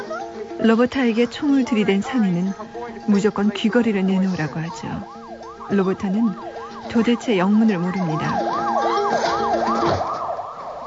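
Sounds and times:
speech: 0.6s - 10.1s
police patrol car siren: 3.7s - 10.8s.

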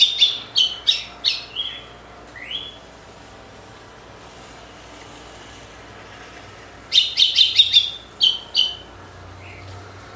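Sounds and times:
red-cowled cardinal song: 0.0s - 2.8s, 6.9s - 9.6s.

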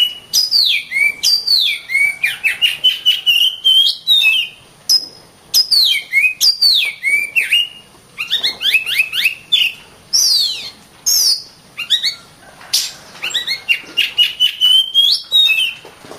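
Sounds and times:
Oriental magpie-robin singing varied whistled medley: 0.0s - 16.1s.

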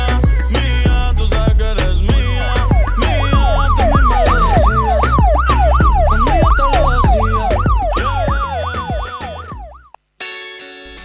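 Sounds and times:
heavy booming bass line: 0.0s - 9.9s
ambulance siren wailing at end of song: 2.8s - 9.9s.

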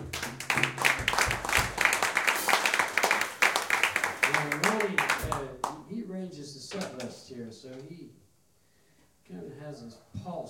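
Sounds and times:
audience applauding an upright bass player: 0.0s - 5.8s.

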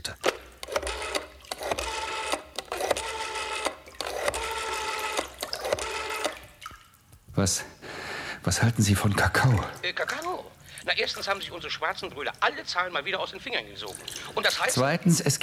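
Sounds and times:
telephone being dialed: 0.2s - 6.6s
speech: 7.4s - 7.8s, 8.4s - 10.3s, 10.9s - 15.4s.

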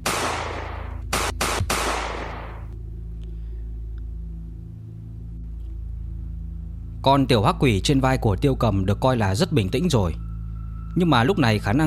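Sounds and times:
gunfire sound effect: 0.0s - 2.7s
speech: 7.0s - 10.2s, 10.9s - 11.8s.

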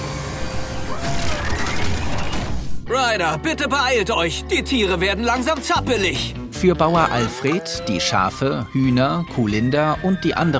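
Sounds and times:
robot dog vehicle whirring and clanking switching into water-driving mode: 0.0s - 2.9s
speech: 2.9s - 10.5s.

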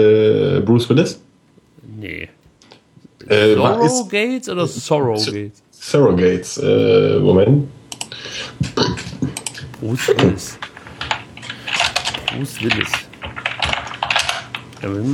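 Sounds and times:
speech: 0.0s - 1.3s, 3.3s - 7.8s, 8.6s - 9.0s, 9.8s - 10.7s, 12.4s - 13.1s, 14.8s - 15.1s
typing on a mechanical computer keyboard: 9.3s - 14.9s.

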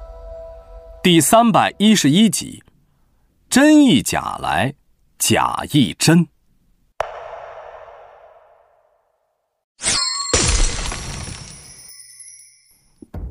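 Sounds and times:
speech: 1.0s - 2.7s, 3.5s - 6.3s
mirror glass shattering: 9.8s - 12.7s.

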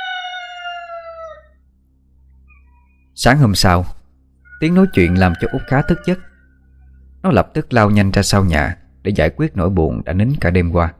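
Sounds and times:
rooster crowing: 0.0s - 1.6s, 4.4s - 7.0s
speech: 3.2s - 4.0s, 4.6s - 6.3s, 7.2s - 10.9s.

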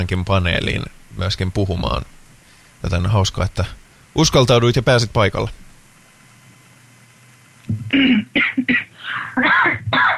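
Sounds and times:
speech: 0.0s - 2.2s, 2.8s - 5.6s, 7.7s - 10.1s
person coughing: 7.9s - 10.1s.

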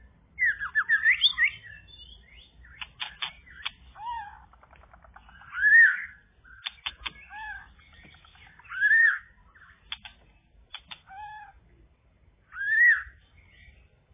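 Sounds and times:
bird singing whistles, chirps and trills: 0.4s - 4.4s, 5.2s - 10.1s, 12.5s - 13.8s.

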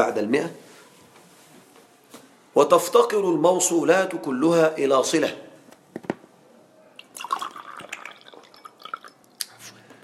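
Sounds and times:
speech: 0.0s - 0.6s, 2.6s - 5.4s
water pouring: 7.0s - 9.3s.

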